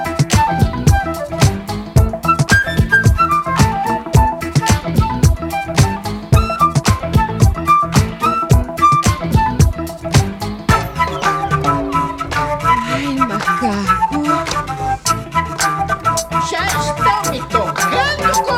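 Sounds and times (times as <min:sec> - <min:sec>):
flute mix: 0:00.0 - 0:18.5.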